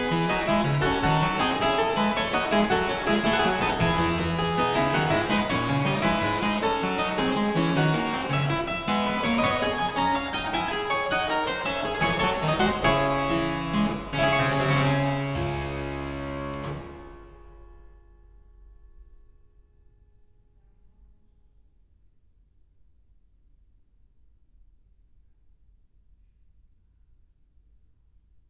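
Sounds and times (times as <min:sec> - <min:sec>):
harpsichord gigue in D minor: 0:00.0 - 0:17.3.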